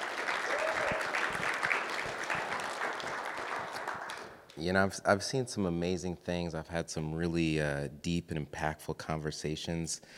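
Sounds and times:
crowd applauding: 0:00.0 - 0:04.6
speech: 0:04.6 - 0:10.1.

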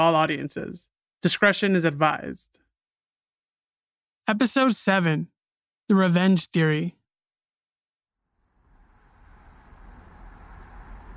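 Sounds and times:
speech: 0:00.0 - 0:02.6, 0:04.3 - 0:05.3, 0:05.9 - 0:07.0
car driving on a road in California's high desert on a hot dusty day: 0:08.4 - 0:11.1.

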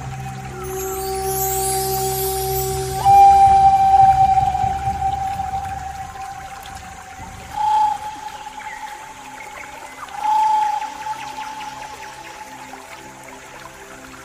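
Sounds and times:
low rumble: 0:00.0 - 0:09.6
pan flute sustained note: 0:00.0 - 0:12.9
airy hiss: 0:00.0 - 0:14.2
trickling water: 0:00.0 - 0:14.2.

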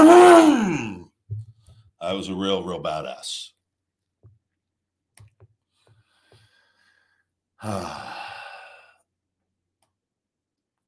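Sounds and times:
voice imitating a car engine revving: 0:00.0 - 0:01.0
low grunt: 0:00.0 - 0:01.1, 0:07.6 - 0:08.6
speech: 0:02.1 - 0:03.6, 0:07.6 - 0:08.3.

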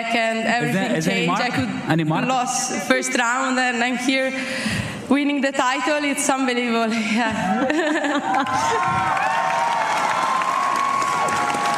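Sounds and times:
speech: 0:00.0 - 0:09.5
laughter: 0:06.9 - 0:09.2
large crowd cheering and clapping: 0:07.8 - 0:11.7
whoops and shouts: 0:08.3 - 0:11.7.

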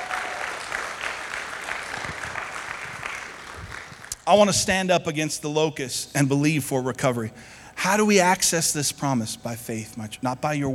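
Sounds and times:
audience applause: 0:00.0 - 0:04.4
speech: 0:04.3 - 0:10.7.

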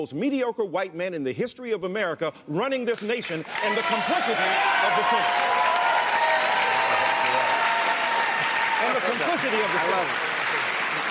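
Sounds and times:
speech: 0:00.0 - 0:05.8, 0:08.8 - 0:10.6
audience cheering and applauding: 0:03.4 - 0:11.0.

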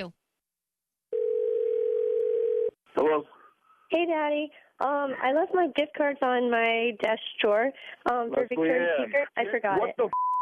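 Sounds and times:
speech: 0:00.0 - 0:00.2, 0:03.0 - 0:03.3, 0:03.9 - 0:10.3
telephone dial tone while placing call: 0:01.2 - 0:02.7.

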